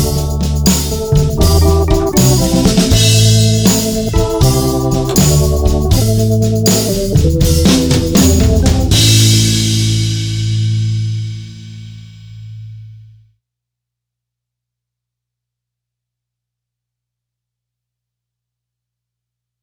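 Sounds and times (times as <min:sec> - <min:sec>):
underscore music: 0:00.0 - 0:10.6.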